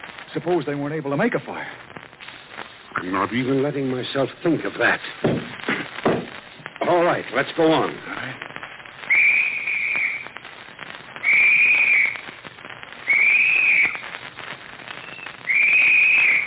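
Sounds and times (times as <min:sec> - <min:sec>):
faint hiss: 0:00.0 - 0:16.4
speech: 0:00.4 - 0:01.9, 0:03.0 - 0:05.4, 0:06.9 - 0:08.4
signal whistle shrill blasts: 0:09.0 - 0:10.3, 0:11.2 - 0:12.2, 0:13.0 - 0:14.0, 0:14.9 - 0:16.4.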